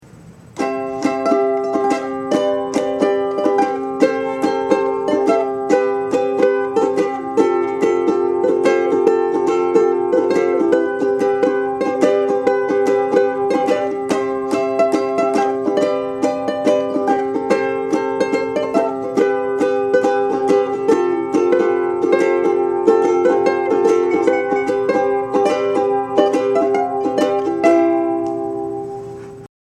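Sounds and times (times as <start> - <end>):
ukulele ringtone: 0.6 - 29.4.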